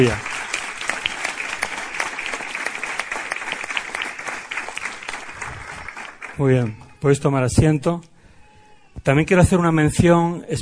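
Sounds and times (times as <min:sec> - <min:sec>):
speech: 0:00.0 - 0:00.3, 0:06.4 - 0:08.1, 0:09.0 - 0:10.6
audience applause: 0:00.0 - 0:06.8.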